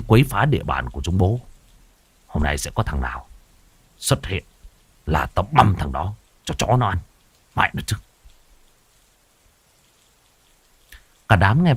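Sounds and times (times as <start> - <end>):
heavy rain falling: 0.0 - 11.7
speech: 0.1 - 1.5, 2.3 - 3.3, 4.0 - 4.5, 5.1 - 8.1, 11.3 - 11.7.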